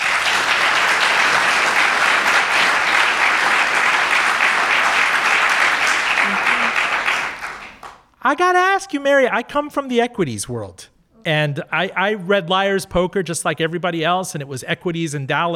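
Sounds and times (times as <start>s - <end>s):
audience applause: 0.0s - 8.1s
speech: 8.2s - 15.5s.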